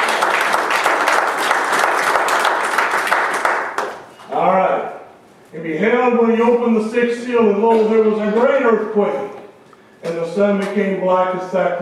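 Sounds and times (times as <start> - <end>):
audience applause: 0.0 - 4.0
speech: 5.8 - 9.2, 10.4 - 11.7.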